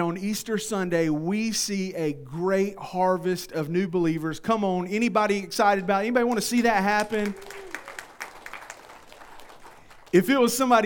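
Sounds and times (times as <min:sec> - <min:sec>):
speech: 0:00.0 - 0:07.7, 0:10.1 - 0:10.8
audience clapping: 0:06.3 - 0:10.8.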